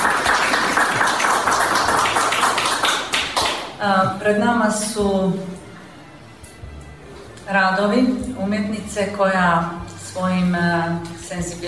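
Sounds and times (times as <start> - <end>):
audience clapping at a wind festival event in Kotor: 0.0 - 3.8
speech: 4.2 - 5.6, 7.5 - 11.6.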